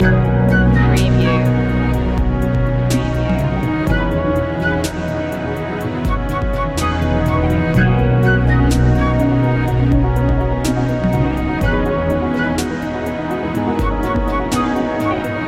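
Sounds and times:
deep technology loop: 0.0 - 15.4.

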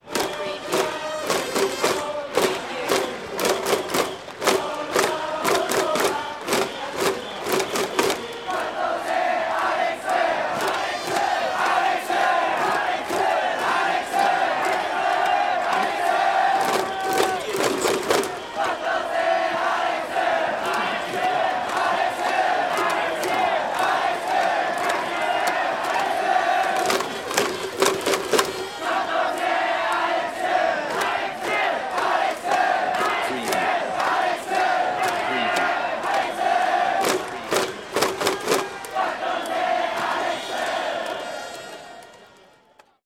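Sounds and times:
baseball crowd chanting in Japan: 0.0 - 43.0.

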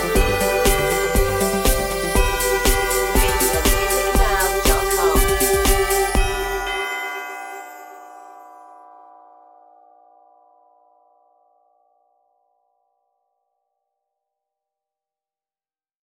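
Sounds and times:
synthesized folk tune melody: 0.0 - 7.8.

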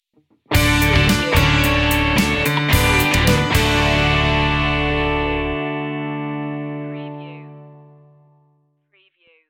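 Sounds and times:
music sting: 0.5 - 6.0.

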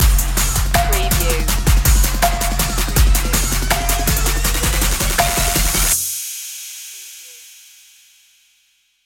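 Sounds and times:
trap music stinger: 0.0 - 6.0.

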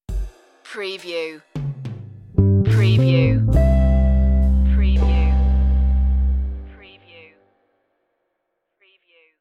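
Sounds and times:
jazzy love stinger: 2.4 - 6.7.

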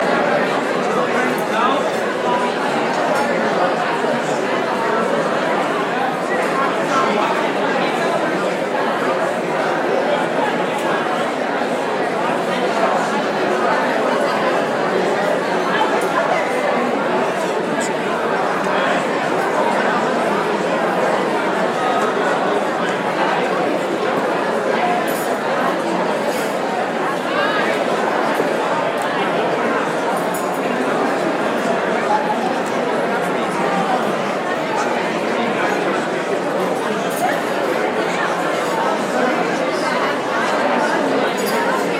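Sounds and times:
huge banquet ambience: 0.0 - 41.9.

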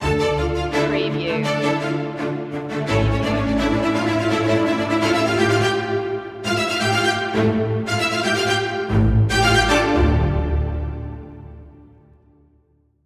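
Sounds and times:
passionate string music: 0.0 - 12.0.

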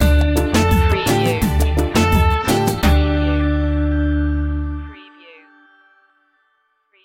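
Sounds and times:
Latin Caribbean reggaeton stinger: 0.0 - 4.2.

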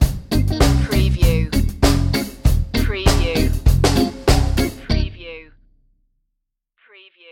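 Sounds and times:
reggae stinger: 0.0 - 5.0.

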